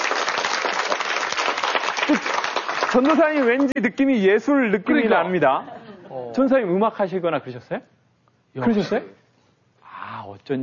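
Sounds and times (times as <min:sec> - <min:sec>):
audience applause during a church gathering: 0:00.0 - 0:04.2
speech: 0:02.1 - 0:05.7, 0:06.4 - 0:09.2, 0:10.3 - 0:10.6.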